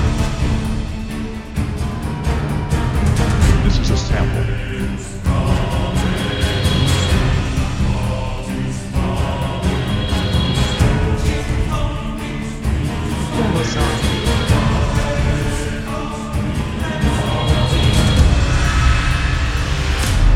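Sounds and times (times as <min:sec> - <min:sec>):
choir singing in a loop: 0:00.0 - 0:20.2.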